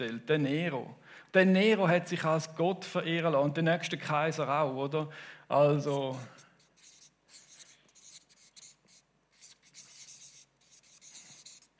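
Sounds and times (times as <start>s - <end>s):
speech: 0.0s - 6.4s
word being written by hand: 5.8s - 11.7s.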